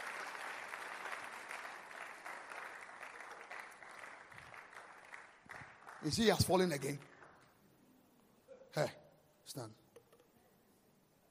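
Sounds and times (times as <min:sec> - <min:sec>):
audience clapping: 0:00.0 - 0:07.6
speech: 0:06.0 - 0:07.1, 0:08.8 - 0:09.8.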